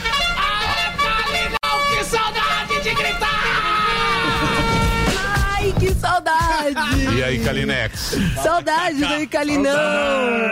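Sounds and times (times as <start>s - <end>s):
trumpets blaring: 0.0s - 6.1s
laughter: 3.5s - 5.0s
speech: 5.9s - 10.5s.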